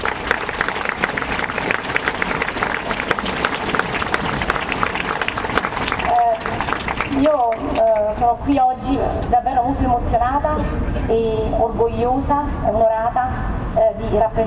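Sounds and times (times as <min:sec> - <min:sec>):
welcoming applause from a crowd: 0:00.0 - 0:08.3
speech: 0:08.2 - 0:14.4.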